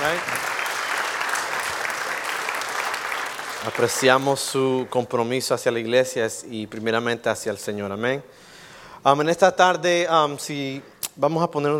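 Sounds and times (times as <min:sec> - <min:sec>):
audience applause: 0:00.0 - 0:04.8
speech: 0:03.6 - 0:11.7.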